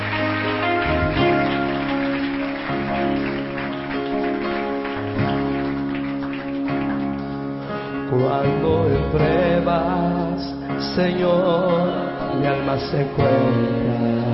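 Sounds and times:
audience clapping hands in worship: 0.0s - 8.2s
speech: 8.2s - 14.2s.

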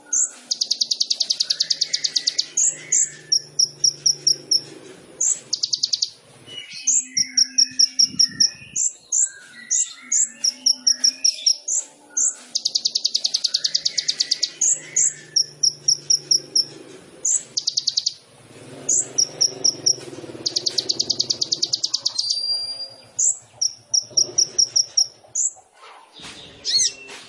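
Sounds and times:
sunbird song: 0.0s - 18.2s, 18.8s - 27.2s.

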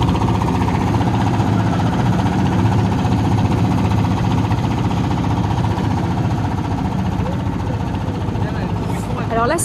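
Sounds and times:
boat engine running as the boat slaloms between sandbanks: 0.0s - 9.6s.

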